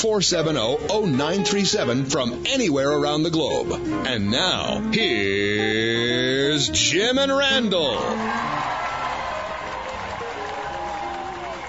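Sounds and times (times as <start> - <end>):
speech: 0.0 - 8.6
crowd cheering: 7.8 - 11.6
clapping: 8.3 - 11.6.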